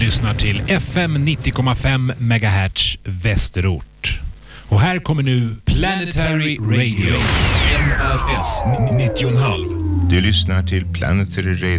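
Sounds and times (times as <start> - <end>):
speech: 0.2 - 11.7
rocket engine ignition and liftoff: 6.9 - 11.7.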